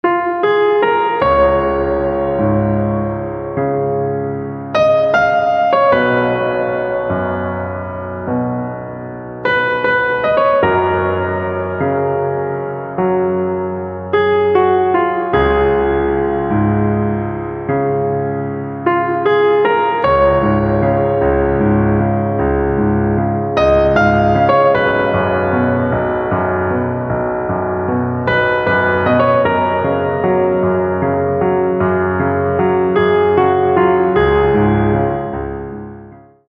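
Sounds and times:
piano: 0.0s - 36.4s.

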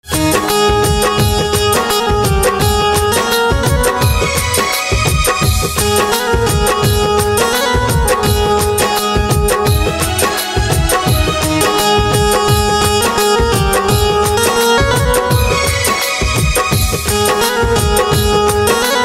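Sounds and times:
banjo instrumental ringtone: 0.1s - 19.0s.

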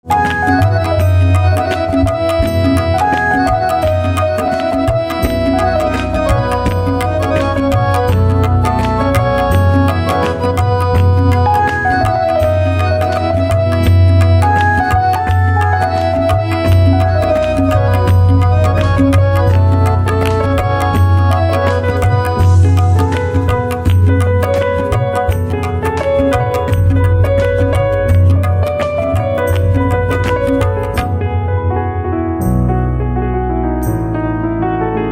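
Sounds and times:
piano: 0.0s - 35.1s.

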